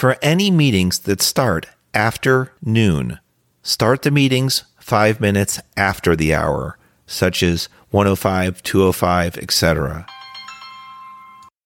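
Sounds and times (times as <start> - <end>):
speech: 0.0 - 10.2
phone ringtone: 10.0 - 11.6.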